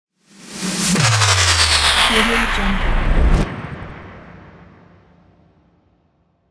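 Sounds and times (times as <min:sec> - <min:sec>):
retro sci-fi sound: 0:01.0 - 0:03.5.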